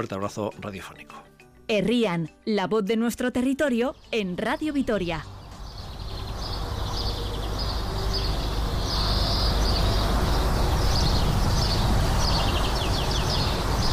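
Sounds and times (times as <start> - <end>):
speech: 0.0 - 5.4
small birds chirping: 0.0 - 13.9
road traffic rumble: 4.5 - 13.9.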